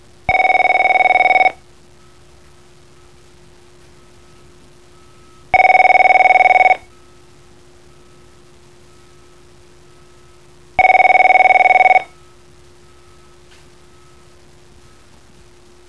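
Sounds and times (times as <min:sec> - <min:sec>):
business-style ringtone: 0:00.3 - 0:01.6, 0:05.0 - 0:07.0, 0:10.8 - 0:12.2.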